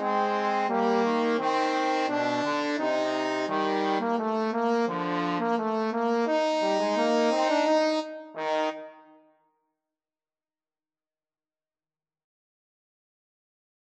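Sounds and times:
trombone duet: 0.0 - 9.0.

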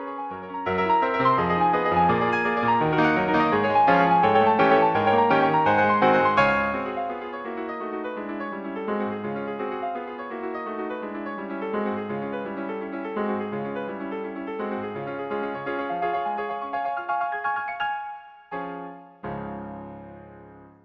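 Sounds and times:
piano etude: 0.0 - 20.8.

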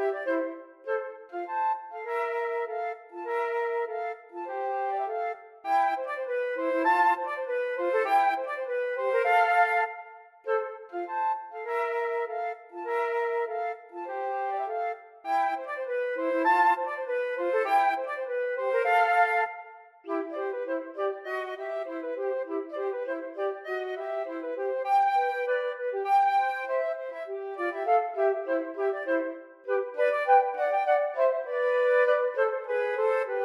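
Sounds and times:
flute duet: 0.0 - 33.4.

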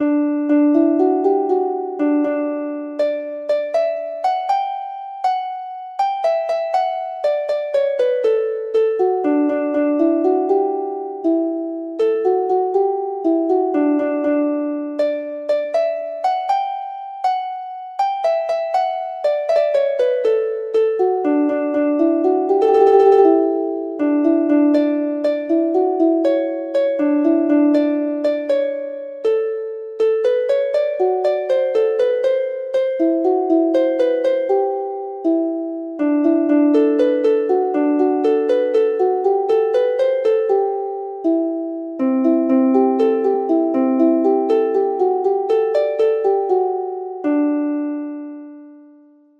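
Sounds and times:
harp: 0.0 - 48.9.

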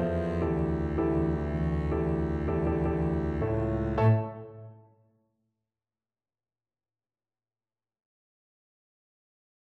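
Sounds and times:
double bass: 0.0 - 4.4.

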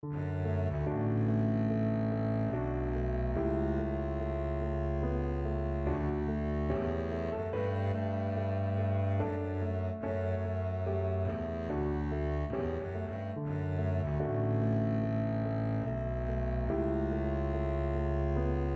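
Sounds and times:
double bass: 0.0 - 18.7.

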